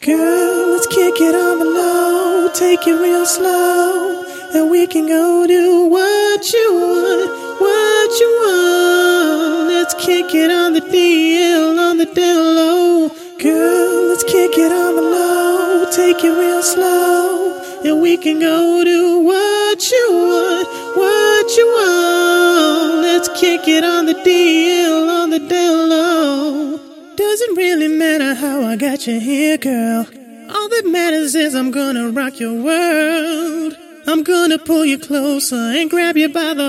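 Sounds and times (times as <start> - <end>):
R&B a cappella singing: 0.0 - 36.6.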